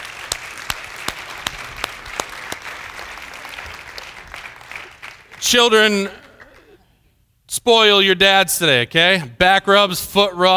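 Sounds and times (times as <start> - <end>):
audience applause: 0.0 - 5.4
sharp loud claps: 0.0 - 5.5
speech: 5.4 - 6.2, 7.5 - 10.5.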